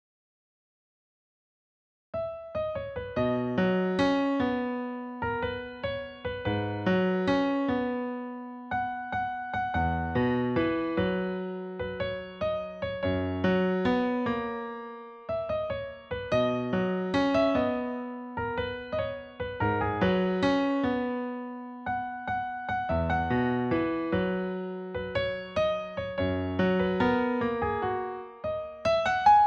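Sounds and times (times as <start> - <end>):
solo piano: 2.2 - 29.4.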